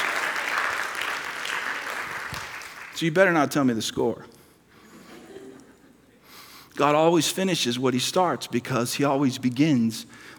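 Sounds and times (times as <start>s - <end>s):
crowd applause: 0.0s - 2.9s
speech: 3.0s - 4.4s, 6.8s - 10.3s.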